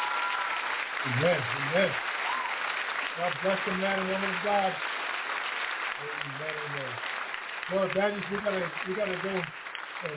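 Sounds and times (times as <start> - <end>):
audience hand clapping: 0.0 - 10.1
speech: 1.0 - 2.1, 3.2 - 4.9, 6.0 - 7.1, 7.7 - 10.1.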